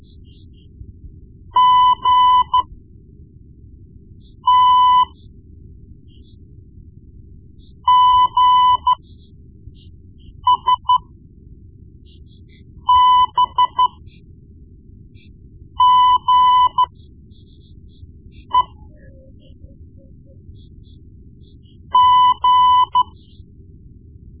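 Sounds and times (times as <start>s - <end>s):
morse code beeps: 1.6s - 2.7s, 4.5s - 5.2s, 7.9s - 9.0s, 10.4s - 11.0s, 12.8s - 14.0s, 15.8s - 17.0s, 18.4s - 20.3s, 21.8s - 23.3s.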